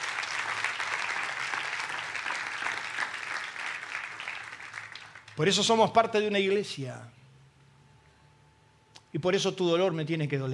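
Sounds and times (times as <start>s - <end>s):
audience applause: 0.0s - 5.4s
speech: 5.4s - 7.2s, 9.2s - 10.5s.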